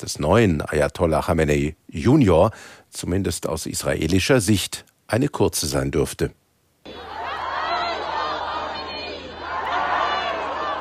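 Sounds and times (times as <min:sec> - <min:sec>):
speech: 0:00.0 - 0:06.4
crowds in Iran cheering their new supreme leader Mojtaba Khamenei: 0:06.9 - 0:10.8.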